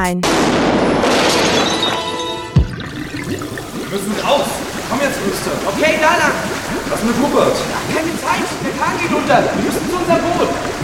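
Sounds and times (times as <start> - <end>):
speech: 0.0 - 1.8, 3.3 - 10.8
glass window shattering from a gunshot: 0.5 - 3.2.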